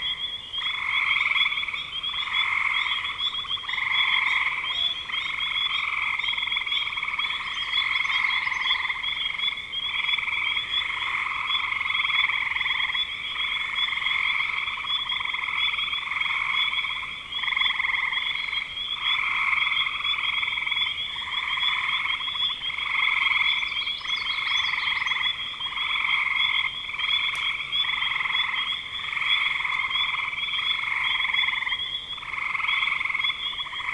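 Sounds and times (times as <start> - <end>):
frog chorus: 0.0 - 33.9.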